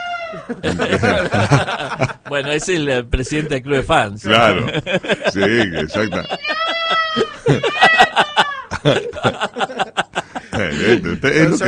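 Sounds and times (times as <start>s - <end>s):
cats yowling on a terrace: 0.0s - 0.5s, 6.1s - 8.7s
laughter: 0.3s - 3.5s, 4.4s - 11.6s
speech: 0.3s - 6.6s, 7.5s - 7.9s, 8.8s - 10.0s, 10.7s - 11.6s.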